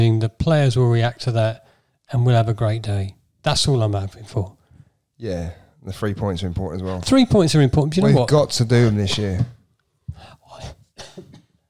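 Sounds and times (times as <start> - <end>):
speech: 0.0 - 4.6, 5.2 - 11.3
person coughing: 8.8 - 9.4, 11.0 - 11.5.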